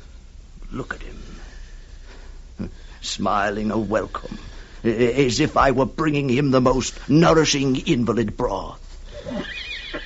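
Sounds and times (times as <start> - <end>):
speech: 0.8 - 1.1, 2.6 - 9.4
horse neighing: 9.2 - 10.0.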